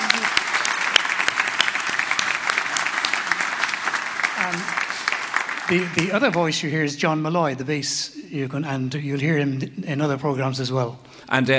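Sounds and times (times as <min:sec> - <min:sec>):
audience applause: 0:00.0 - 0:06.8
speech: 0:05.7 - 0:11.5.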